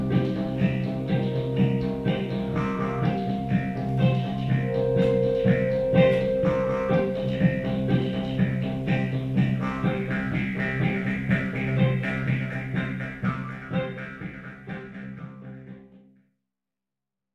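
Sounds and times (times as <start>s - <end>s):
Jews harp in techno music: 0.0s - 15.6s
guitar in techno music: 0.0s - 16.0s.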